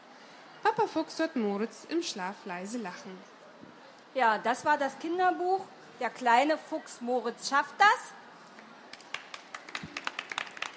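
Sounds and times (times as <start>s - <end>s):
speech: 0.8s - 3.4s, 4.2s - 8.2s
scattered applause from a small audience after a reading: 8.6s - 10.7s.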